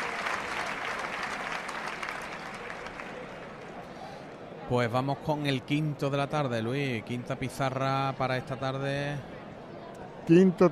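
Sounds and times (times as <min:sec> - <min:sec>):
bullring crowd applauding an ovation: 0:00.0 - 0:04.0
faint murmur of voices: 0:02.3 - 0:10.7
speech: 0:04.7 - 0:09.3, 0:10.3 - 0:10.7.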